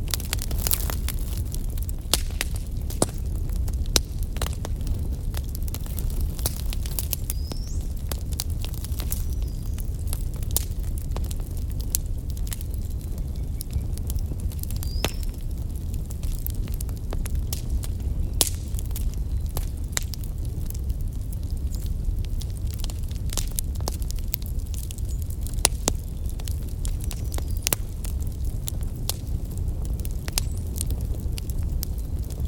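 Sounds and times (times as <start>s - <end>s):
daytime bonfire in a forest: 0.0s - 32.4s.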